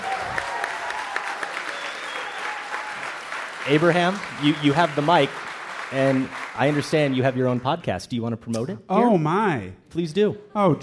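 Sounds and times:
live audience applause: 0.0 - 8.2
speech: 3.6 - 10.8.

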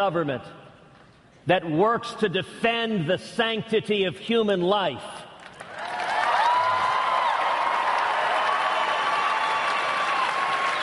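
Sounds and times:
speech: 0.0 - 0.7, 1.4 - 5.3
crowd applause: 5.5 - 10.8
crowd whistles and cheers: 5.8 - 10.8.

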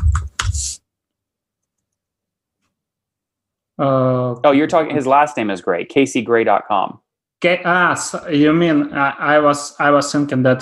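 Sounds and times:
typing on a computer keyboard: 0.0 - 0.8
speech: 3.8 - 10.5.

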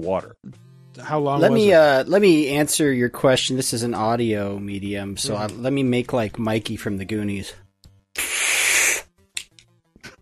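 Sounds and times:
speech: 0.0 - 7.6
asthma inhaler puff: 8.2 - 9.1.

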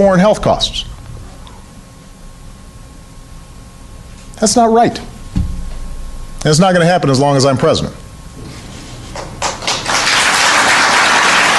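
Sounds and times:
speech: 0.0 - 0.9, 4.4 - 5.1, 6.4 - 8.0
crowd applauding a speech: 9.1 - 11.5.

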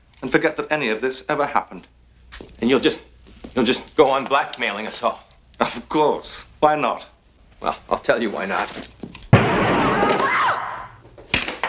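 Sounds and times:
speech: 0.2 - 2.0, 2.6 - 9.0
gunshot in a tense drama scene: 9.3 - 11.0.

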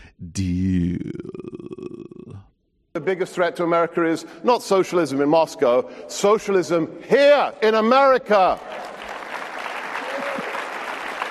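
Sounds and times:
speech: 0.4 - 1.3, 3.1 - 8.9
polite audience applause: 8.4 - 11.3.

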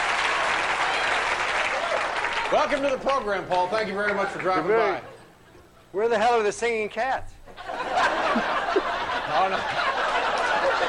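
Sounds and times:
studio audience applause: 0.0 - 4.9, 9.2 - 10.8
speech: 2.5 - 5.1, 5.9 - 7.4, 8.4 - 10.0
laughter: 7.5 - 10.8.

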